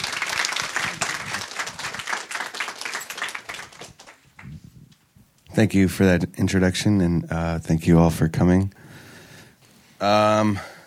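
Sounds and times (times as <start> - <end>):
audience applause welcoming an author to a book reading: 0.0 - 4.6
speech: 5.6 - 8.8, 10.0 - 10.7.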